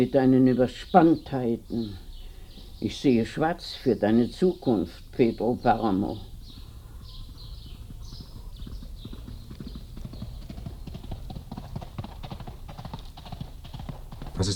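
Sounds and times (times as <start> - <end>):
speech: 0.0 - 2.0, 2.8 - 6.3
hooves clip-clopping: 5.7 - 14.5
horse galloping: 5.7 - 14.5.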